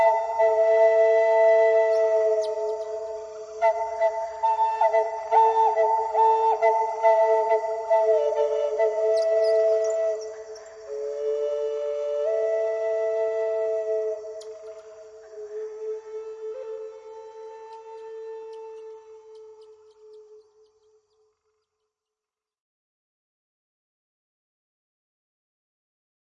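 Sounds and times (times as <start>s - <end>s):
Native American flute playing: 0.0s - 20.4s.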